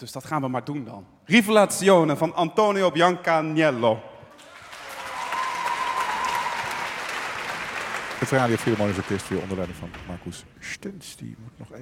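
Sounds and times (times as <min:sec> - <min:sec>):
speech: 0:00.0 - 0:04.1, 0:08.2 - 0:11.8
audience applause: 0:04.4 - 0:10.4.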